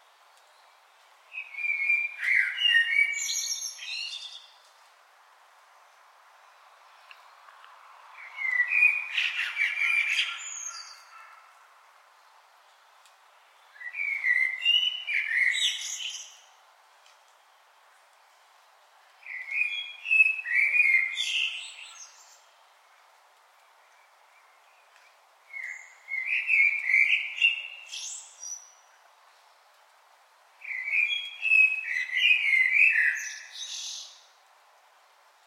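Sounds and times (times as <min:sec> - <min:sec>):
common blackbird singing: 0:01.3 - 0:04.5, 0:08.2 - 0:11.4, 0:13.6 - 0:16.5, 0:19.2 - 0:22.5, 0:25.5 - 0:28.8, 0:30.6 - 0:34.2.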